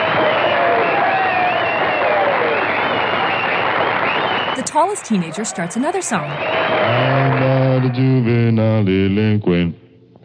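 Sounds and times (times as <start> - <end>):
kids applauding wildly: 0.0 - 5.6, 6.4 - 7.8
speech: 4.8 - 9.8.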